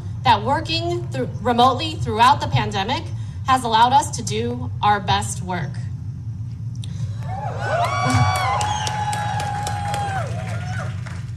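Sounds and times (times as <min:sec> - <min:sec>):
speech: 0:00.2 - 0:05.8
office workers clapping and cheering in protest: 0:07.2 - 0:11.3.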